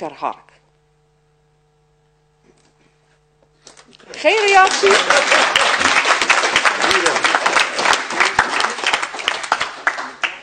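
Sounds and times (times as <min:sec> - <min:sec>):
speech: 0:00.0 - 0:00.6, 0:04.1 - 0:05.6
group applauding: 0:03.9 - 0:10.4.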